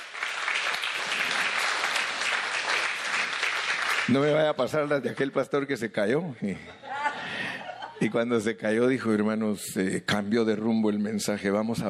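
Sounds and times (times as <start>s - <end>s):
audience clapping: 0.0s - 5.6s
speech: 4.1s - 6.9s, 8.0s - 11.8s.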